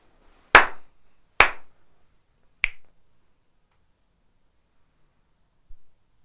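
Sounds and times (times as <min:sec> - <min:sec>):
finger snap: 0:00.6 - 0:01.7, 0:02.6 - 0:03.0
hard slaps: 0:00.6 - 0:01.7.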